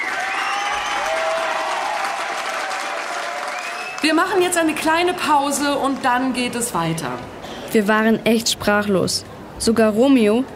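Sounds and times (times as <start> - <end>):
faint tonal whistling or cheering: 0.0 - 2.4, 3.2 - 4.1
sustained applause from a crowd: 0.0 - 4.5
speech: 4.0 - 10.5.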